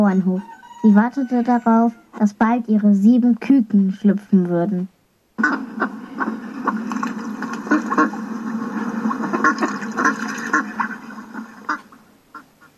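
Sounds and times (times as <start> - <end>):
speech: 0.0 - 5.7
ducks quacking: 5.4 - 12.7.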